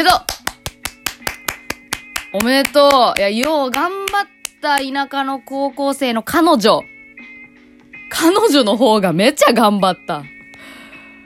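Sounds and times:
speech: 0:00.0 - 0:00.3, 0:02.3 - 0:06.9, 0:08.1 - 0:10.3
hands clapping in congratulation: 0:00.1 - 0:05.0.

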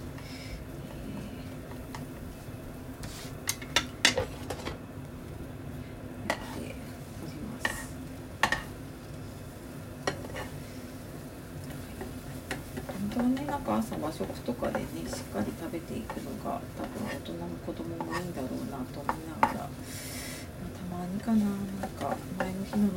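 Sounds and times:
egg cooking in a pan: 0:00.0 - 0:22.9
utensil scraping and tapping a pan: 0:03.5 - 0:04.8, 0:06.3 - 0:06.6, 0:08.4 - 0:08.7, 0:10.0 - 0:10.6, 0:11.6 - 0:17.4, 0:18.0 - 0:19.7, 0:21.4 - 0:22.9
speech: 0:13.7 - 0:20.1, 0:21.2 - 0:22.9.

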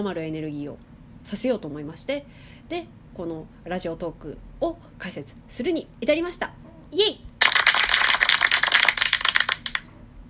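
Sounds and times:
speech: 0:00.0 - 0:07.3
canned applause sound effect: 0:07.4 - 0:09.8.

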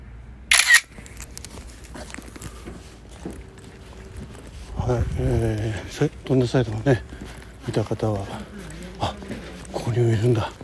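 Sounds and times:
camera shutter snap: 0:00.5 - 0:00.9
faint scuffs and taps: 0:00.9 - 0:10.6
speech: 0:04.9 - 0:09.1, 0:10.0 - 0:10.6.

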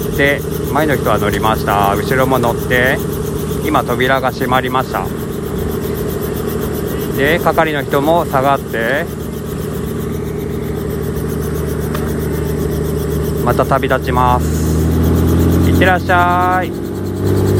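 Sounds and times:
helicopter engine running before takeoff: 0:00.0 - 0:17.5
speech: 0:00.2 - 0:05.2, 0:07.2 - 0:09.2, 0:13.5 - 0:15.1, 0:15.8 - 0:17.5.

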